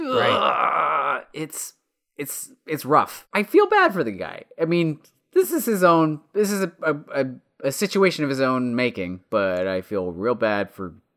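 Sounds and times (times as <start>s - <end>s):
man grunting: 0.0s - 1.3s
man groaning while being electrocuted: 0.0s - 1.4s
speech: 1.4s - 11.0s.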